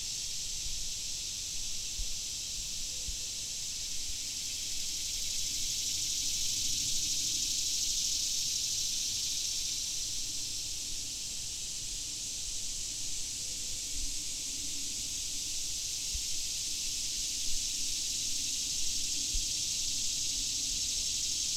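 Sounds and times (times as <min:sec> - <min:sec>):
swamp cicadas droning in a continuous high hiss: 0:00.0 - 0:21.5.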